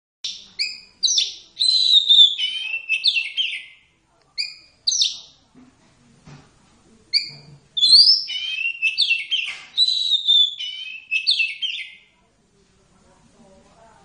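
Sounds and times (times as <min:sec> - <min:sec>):
Oriental magpie-robin song of clear whistles and chattery notes: 0:00.2 - 0:03.8, 0:07.2 - 0:12.0.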